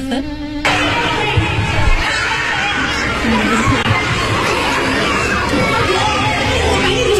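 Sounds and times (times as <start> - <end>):
shouting and chatter: 0.6 - 7.1
young children screaming and wailing at kindergarten drop-off: 0.6 - 7.1
laughter: 0.7 - 7.1.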